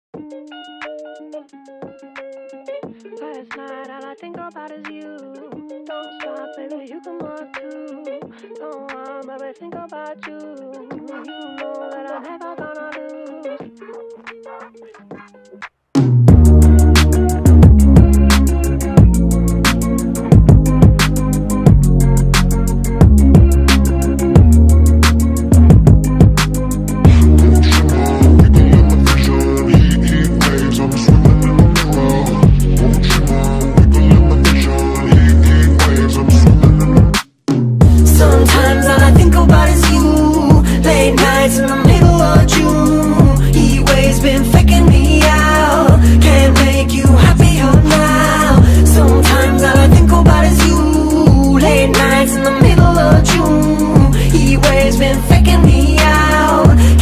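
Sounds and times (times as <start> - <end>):
sped-up nightcore music: 16.0 - 37.2, 37.8 - 57.0.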